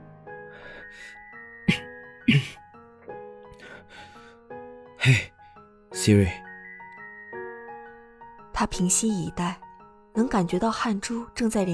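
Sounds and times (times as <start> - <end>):
speech: 0.9 - 1.2, 5.0 - 5.4, 6.0 - 6.4, 8.6 - 9.6, 10.2 - 11.7
throat clearing: 1.7 - 2.6.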